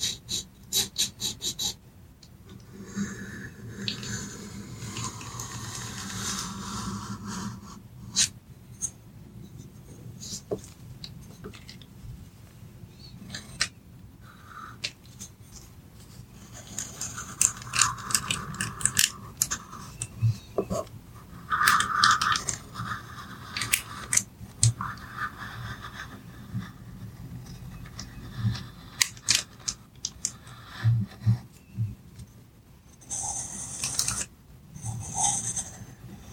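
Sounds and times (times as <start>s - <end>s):
pencils scratching and tracing on paper: 0.0s - 1.8s, 2.7s - 9.0s, 14.4s - 31.7s, 33.0s - 36.3s
quiet low hum: 0.0s - 36.3s.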